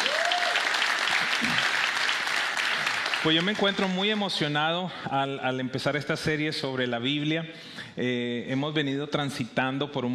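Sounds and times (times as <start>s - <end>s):
audience applause: 0.0s - 4.5s
speech: 3.2s - 10.1s.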